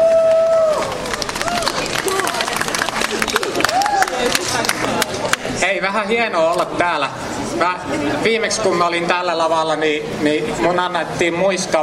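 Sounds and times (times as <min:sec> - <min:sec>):
scattered cheers: 0:00.0 - 0:04.4
crowd applauding: 0:00.0 - 0:05.5
speech: 0:05.8 - 0:11.8.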